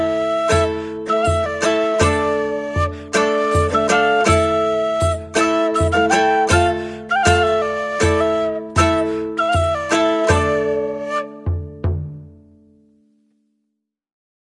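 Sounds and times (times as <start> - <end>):
flute: 0.0 - 12.0
kithara: 0.0 - 12.1
drum: 11.4 - 12.4.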